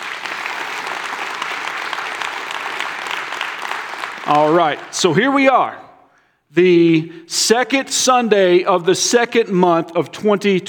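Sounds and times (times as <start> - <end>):
audience applause: 0.0 - 5.0
speech: 4.3 - 5.8, 6.5 - 10.6.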